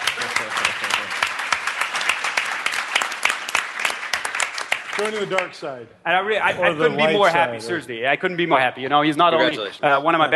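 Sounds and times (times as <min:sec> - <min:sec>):
audience applause: 0:00.0 - 0:05.6
speech: 0:05.0 - 0:10.3.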